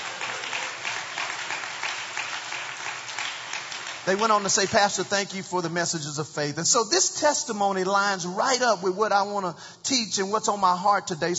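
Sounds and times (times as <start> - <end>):
audience hand clapping: 0.0 - 5.4
speech: 4.0 - 11.3.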